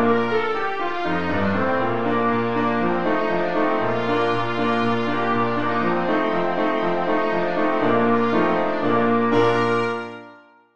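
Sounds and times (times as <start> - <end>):
trumpet playing a can-can tune: 0.0 - 10.7.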